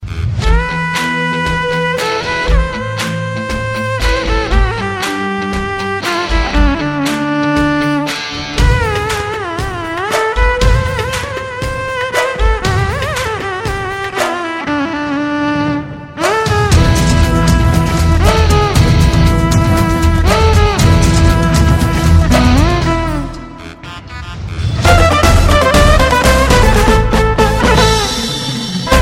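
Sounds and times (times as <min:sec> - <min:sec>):
violin: 0:00.0 - 0:29.0.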